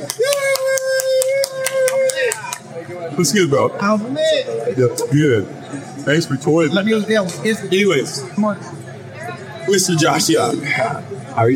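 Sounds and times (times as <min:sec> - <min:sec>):
hand claps: 0:00.0 - 0:02.7
speech: 0:03.2 - 0:08.8, 0:09.7 - 0:11.5.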